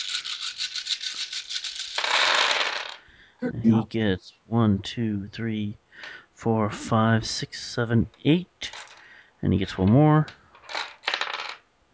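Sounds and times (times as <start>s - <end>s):
dice shaken in hand: 0.0s - 3.0s
speech: 3.4s - 5.8s, 6.4s - 8.8s, 9.4s - 10.4s.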